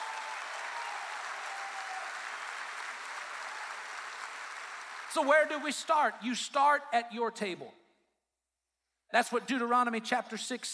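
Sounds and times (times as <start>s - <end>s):
audience hand clapping: 0.0s - 5.6s
speech: 5.1s - 7.8s, 9.1s - 10.7s.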